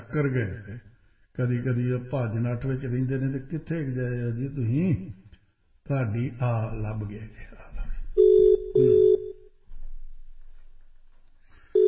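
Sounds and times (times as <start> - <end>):
speech: 0.1 - 5.2, 5.9 - 7.8
telephone ringing on an outgoing call from a radio station: 8.2 - 9.5.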